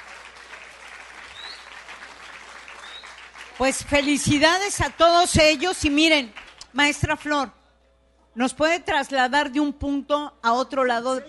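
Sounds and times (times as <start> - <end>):
audience applause: 0.0 - 6.6
speech: 3.6 - 7.6, 8.4 - 11.2.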